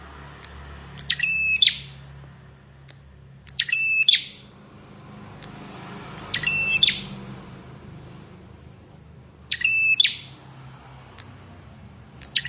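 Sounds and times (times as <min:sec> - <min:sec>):
plain prinia buzzy clicking song: 0:00.3 - 0:04.6, 0:05.2 - 0:07.3, 0:09.4 - 0:12.4.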